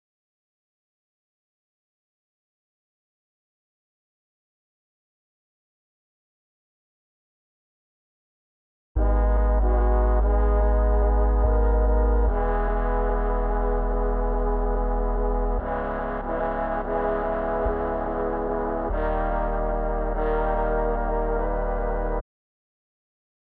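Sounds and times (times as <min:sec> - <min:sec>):
brass melody loop in G# minor: 0:09.0 - 0:22.2.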